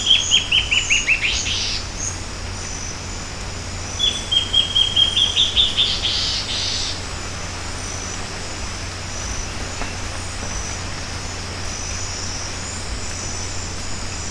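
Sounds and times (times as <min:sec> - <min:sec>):
bird chirping calls: 0:00.0 - 0:02.2, 0:04.0 - 0:07.0
insect drone: 0:00.0 - 0:14.3.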